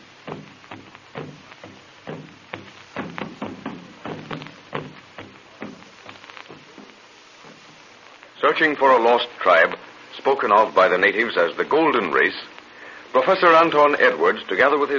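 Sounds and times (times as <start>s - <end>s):
hollow log drums booming: 0.0s - 8.3s
speech: 8.5s - 12.5s, 13.2s - 14.9s.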